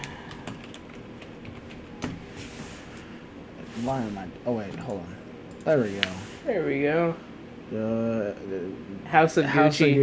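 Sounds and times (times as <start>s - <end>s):
typing on a computer keyboard: 0.0s - 2.0s
low steady hum: 0.0s - 10.0s
speech: 3.8s - 10.0s.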